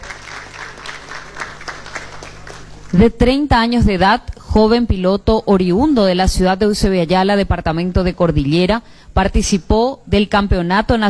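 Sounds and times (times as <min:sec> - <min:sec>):
applause for a young rally driver being introduced: 0:00.0 - 0:03.0
speech: 0:02.9 - 0:11.0.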